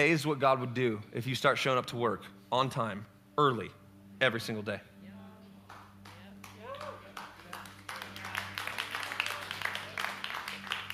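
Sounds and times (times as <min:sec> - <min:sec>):
speech: 0:00.0 - 0:04.9
audience clapping: 0:05.7 - 0:10.9.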